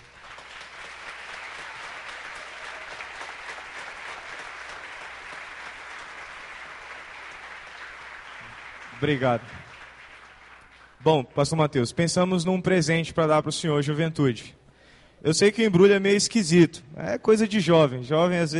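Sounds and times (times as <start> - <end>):
audience applause: 0.0 - 11.0
speech: 9.0 - 9.6, 11.0 - 14.6, 15.2 - 18.5.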